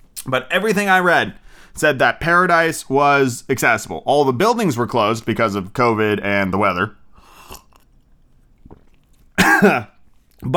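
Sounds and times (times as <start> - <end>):
faint small noises: 0.0 - 10.5
speech: 0.3 - 7.0, 9.6 - 10.5
person coughing after tea went down the wrong pipe: 9.4 - 10.0.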